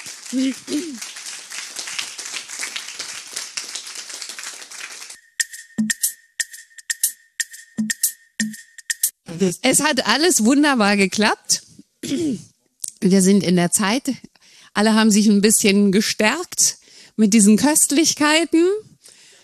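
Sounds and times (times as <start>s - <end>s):
audience applause: 0.0s - 5.2s
person whooping: 0.3s - 1.1s
speech: 0.3s - 1.2s, 9.4s - 18.8s
steady high-pitched tone: 5.2s - 9.9s.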